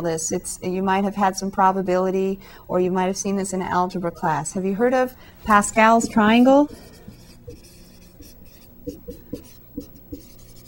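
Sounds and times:
speech: 0.0 - 7.6
low steady hum: 0.0 - 10.6
writing by hand laying out Pascal's triangle in a maths lesson: 5.9 - 10.6.

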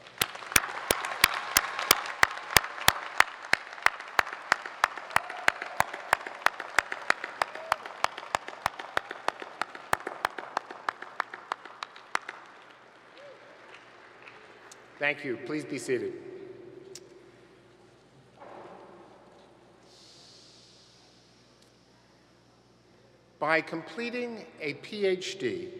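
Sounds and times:
audience applause: 0.0 - 14.8
one set of sharp steady claps: 0.0 - 15.0
speech: 15.0 - 16.3, 23.5 - 25.7.

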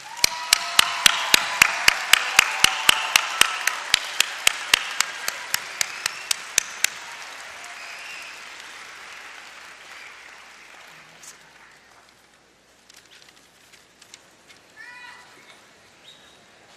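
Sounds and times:
audience applause: 0.0 - 12.1.

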